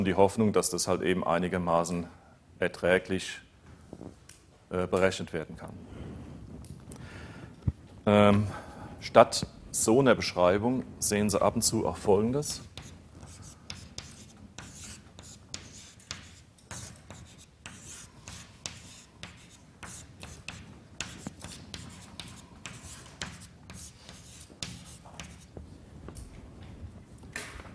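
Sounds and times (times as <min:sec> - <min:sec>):
speech: 0:00.0 - 0:05.9, 0:08.0 - 0:12.7
handwriting an equals sign scratching across a writing surface: 0:12.5 - 0:25.6.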